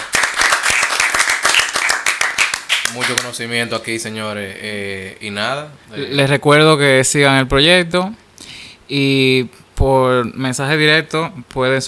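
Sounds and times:
applause for the guest: 0.0 - 3.4
speech: 2.9 - 8.2, 8.9 - 11.8.

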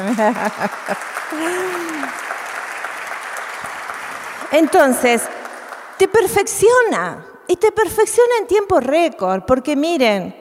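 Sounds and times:
laughter: 0.0 - 2.2
speech: 0.0 - 2.3, 4.5 - 5.4, 6.0 - 10.4
audience applause: 0.0 - 6.1.

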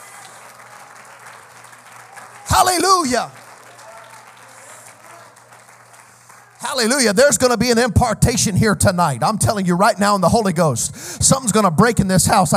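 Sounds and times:
audience clapping hands: 0.0 - 8.1
speech: 2.5 - 3.4, 6.7 - 12.5.

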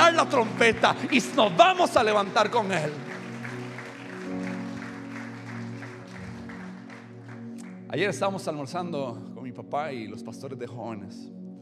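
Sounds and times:
crowd applauding: 0.0 - 8.0
speech: 0.2 - 3.2, 7.9 - 11.4.

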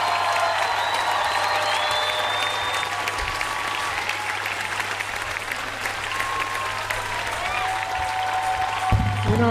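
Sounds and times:
crowd applauding: 0.0 - 9.4
scattered whistles from the crowd: 0.5 - 3.0.

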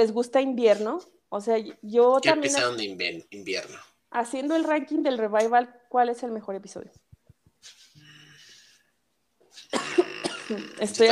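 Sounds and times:
speech: 0.0 - 7.0, 7.6 - 7.9, 9.7 - 11.0
person coughing fit: 9.6 - 11.0.

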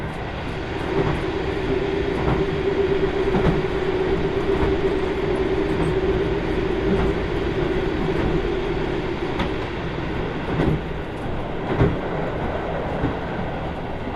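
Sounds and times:
Kyushu Odan limited express train on the Hohi Line: 0.0 - 14.1
sustained humming tone: 0.0 - 14.1.

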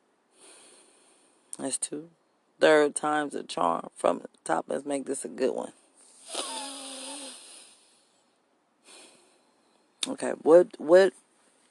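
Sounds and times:
deep breathing during a breathing exercise: 0.3 - 1.5, 6.0 - 8.2, 8.8 - 10.0
speech: 1.6 - 6.4, 10.0 - 11.2.

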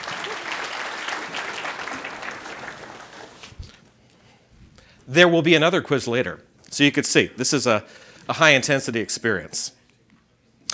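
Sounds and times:
audience applause: 0.0 - 3.5
speech: 5.1 - 9.8.

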